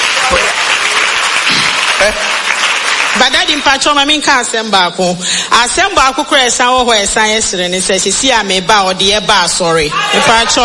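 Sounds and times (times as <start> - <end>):
clapping: 0.0 - 3.7
speech: 2.0 - 2.4, 3.2 - 10.6
laughter: 9.9 - 10.6.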